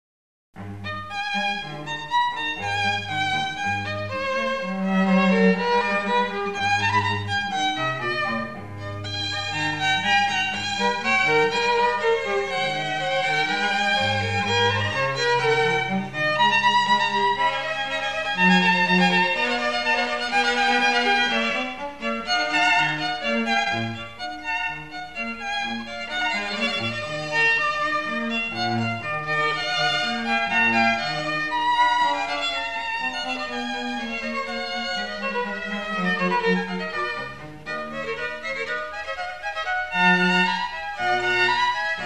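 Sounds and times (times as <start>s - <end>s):
chamber trio in G minor: 0.6s - 42.0s.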